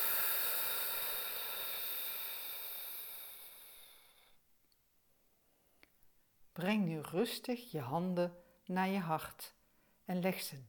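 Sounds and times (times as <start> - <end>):
long breath out during a guided breathing exercise: 0.0 - 4.4
speech: 6.6 - 10.6.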